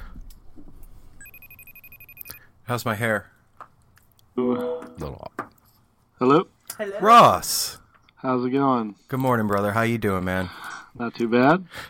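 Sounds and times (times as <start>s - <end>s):
phone ringing: 1.2s - 2.5s
speech: 2.7s - 3.3s, 4.4s - 5.3s, 6.2s - 11.8s.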